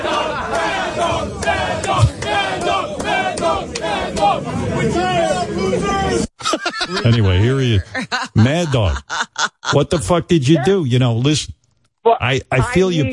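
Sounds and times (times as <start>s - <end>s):
baseball players chanting in celebration: 0.0s - 6.1s
laughter: 6.4s - 10.8s
speech: 6.9s - 13.1s.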